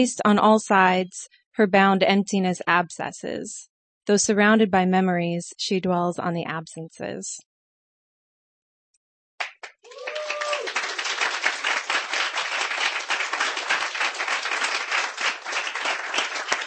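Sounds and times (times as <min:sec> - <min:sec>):
speech: 0:00.0 - 0:07.5
audience clapping after a poetry reading: 0:09.4 - 0:16.6.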